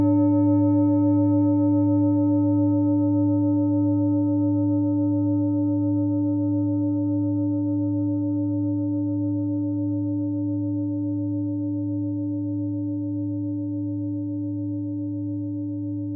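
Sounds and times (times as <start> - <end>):
klangschale singing bowl from Nepal: 0.0 - 16.1.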